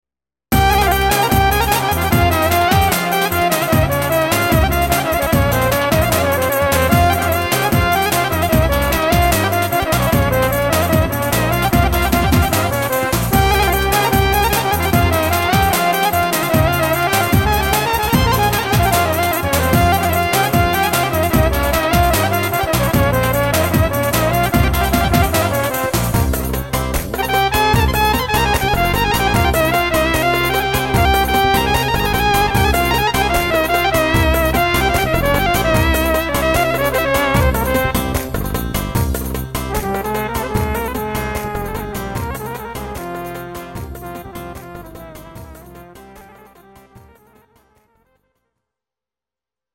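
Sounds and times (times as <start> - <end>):
ciftetelli dance music: 0.5 - 47.5.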